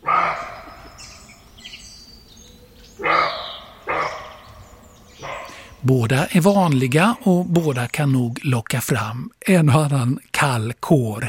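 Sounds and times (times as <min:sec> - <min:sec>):
roe deer barking: 0:00.0 - 0:08.4
speech: 0:05.8 - 0:11.2.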